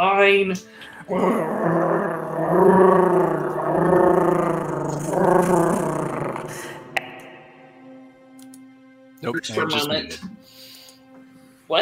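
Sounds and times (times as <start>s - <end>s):
speech: 0.0s - 4.4s, 9.2s - 10.7s
voice imitating giant cat purring: 1.1s - 7.2s
small click: 8.4s - 8.6s.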